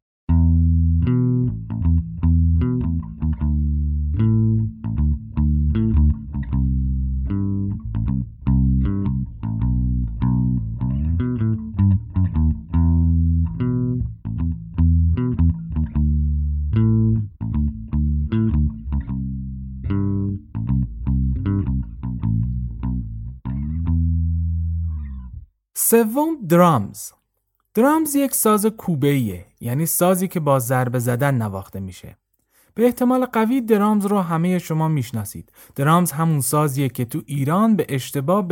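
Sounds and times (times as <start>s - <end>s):
four-string electric bass guitar playing: 0.3s - 25.6s
speech: 25.9s - 27.2s, 27.8s - 38.4s.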